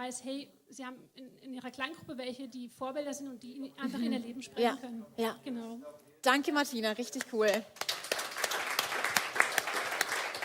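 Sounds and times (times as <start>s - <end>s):
speech: 0.1s - 7.9s
audience applause: 7.8s - 10.4s.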